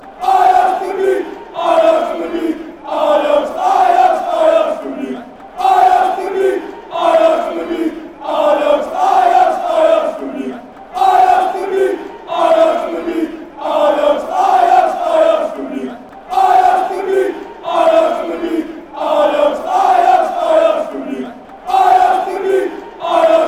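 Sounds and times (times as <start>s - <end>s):
football crowd fan chants: 0.0s - 23.4s.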